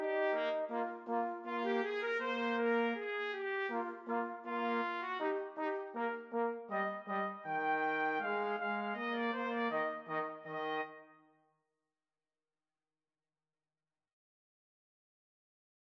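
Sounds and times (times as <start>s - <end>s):
trombone: 0.0s - 11.0s
two trumpets: 0.0s - 11.2s.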